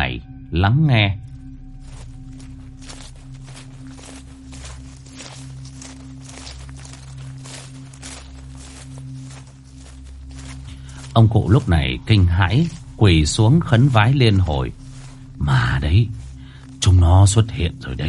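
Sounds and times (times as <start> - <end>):
speech: 0.2 - 1.2, 11.2 - 14.8, 15.4 - 16.2, 16.8 - 18.0
footsteps walking around: 1.3 - 18.0.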